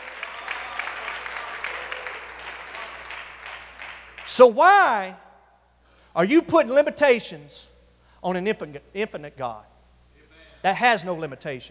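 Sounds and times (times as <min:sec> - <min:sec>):
audience clapping: 0:00.0 - 0:04.4
speech: 0:04.3 - 0:05.2, 0:06.2 - 0:09.7, 0:10.6 - 0:11.6.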